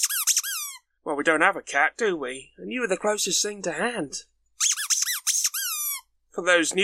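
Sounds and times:
rubber duck squeaking: 0.0s - 0.9s, 4.6s - 6.1s
speech: 1.1s - 4.7s, 6.4s - 6.8s.

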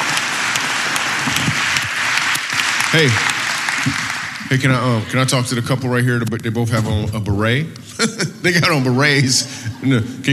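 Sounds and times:
audience applause: 0.0s - 5.3s
speech: 2.9s - 10.3s
laughter: 7.8s - 10.3s.

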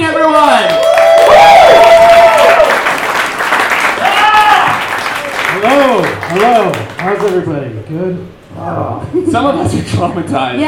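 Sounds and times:
high drawn-out cheers: 0.4s - 6.8s
audience applause: 0.6s - 7.4s
speech: 7.3s - 8.3s, 9.1s - 10.6s.

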